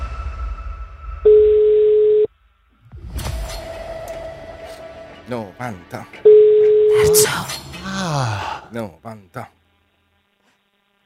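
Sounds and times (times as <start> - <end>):
telephone ringing tone: 1.3 - 2.3
speech: 5.3 - 6.3, 6.9 - 9.6.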